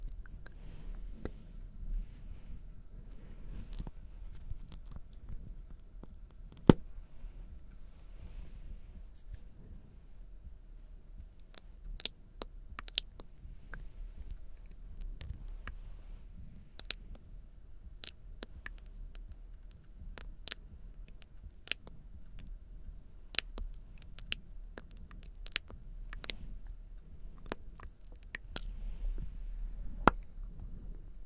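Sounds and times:
low soft rumble: 0:00.0 - 0:31.2
sticky sounds like honey: 0:03.5 - 0:06.8, 0:11.2 - 0:15.8, 0:16.5 - 0:22.6, 0:23.2 - 0:28.8
wet mouth clicks and smacks: 0:03.6 - 0:06.8, 0:11.2 - 0:13.8, 0:16.6 - 0:17.3, 0:17.9 - 0:22.5, 0:23.3 - 0:26.7, 0:27.3 - 0:28.8.

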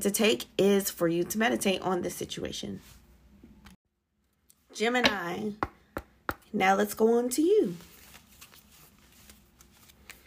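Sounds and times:
speech: 0:00.0 - 0:03.0, 0:04.8 - 0:05.7, 0:06.5 - 0:07.9
Moon Oracle deck cards shuffled by hand: 0:07.8 - 0:10.2.

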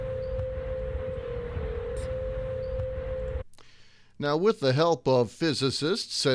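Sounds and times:
Golden Gate Bridge humming in the wind: 0:00.0 - 0:03.4
speech: 0:04.2 - 0:06.3.

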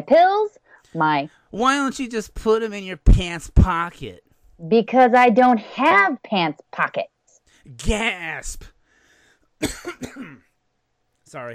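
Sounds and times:
speech: 0:00.0 - 0:08.7, 0:09.6 - 0:10.4, 0:11.3 - 0:11.5
coughing from a dry throat: 0:09.6 - 0:10.5.

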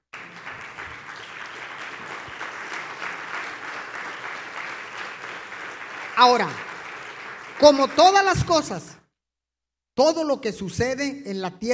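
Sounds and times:
audience applause: 0:00.0 - 0:08.8
speech: 0:06.2 - 0:06.6, 0:07.6 - 0:08.9, 0:10.0 - 0:11.7.

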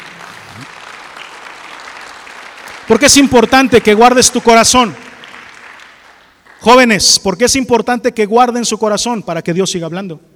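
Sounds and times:
audience applause: 0:00.0 - 0:06.6
speech: 0:00.6 - 0:00.8, 0:02.9 - 0:05.1, 0:06.6 - 0:10.3.

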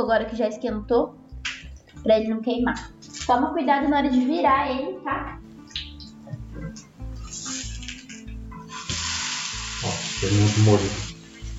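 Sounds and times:
speech: 0:00.0 - 0:01.2, 0:02.0 - 0:05.4, 0:09.8 - 0:11.1
food frying in a pan: 0:08.7 - 0:11.5.

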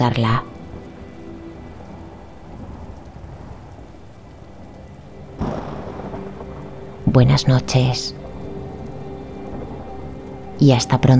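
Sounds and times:
speech: 0:00.0 - 0:00.5, 0:07.2 - 0:08.2, 0:10.6 - 0:11.1
steady rain from a summer thunderstorm: 0:00.0 - 0:11.1
thunder crack: 0:02.5 - 0:11.1.

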